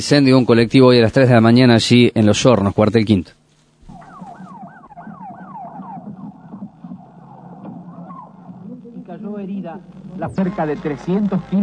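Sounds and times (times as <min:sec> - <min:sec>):
speech: 0:00.0 - 0:03.4, 0:09.6 - 0:11.6
radio news separator sting: 0:03.9 - 0:11.6.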